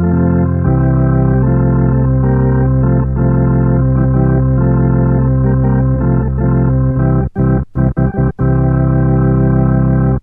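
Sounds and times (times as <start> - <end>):
Eminent 310 Hammond organ playing: 0.0 - 10.2.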